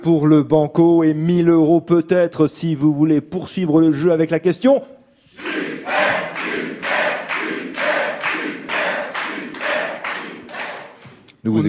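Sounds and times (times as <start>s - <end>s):
speech: 0.0s - 5.0s, 11.4s - 11.6s
studio audience applause: 6.2s - 11.0s.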